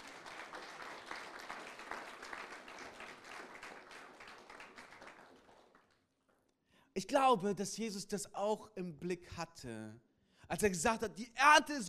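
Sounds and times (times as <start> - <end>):
crowd applause: 0.0 - 6.0
speech: 7.0 - 11.8.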